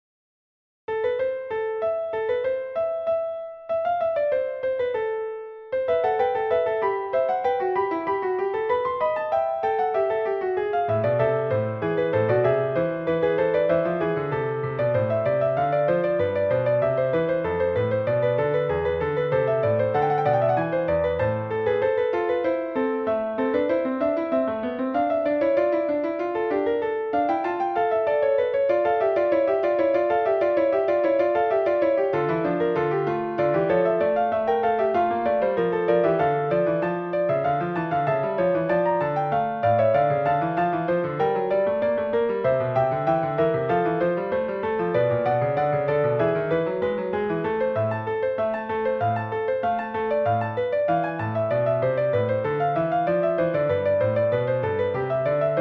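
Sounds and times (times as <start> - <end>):
Baroque style fugue: 1.2 - 55.6.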